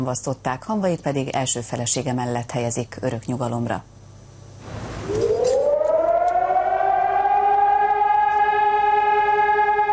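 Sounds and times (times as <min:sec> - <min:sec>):
speech: 0:00.0 - 0:04.0
sirens sounding for a minute of mourning: 0:05.0 - 0:09.9.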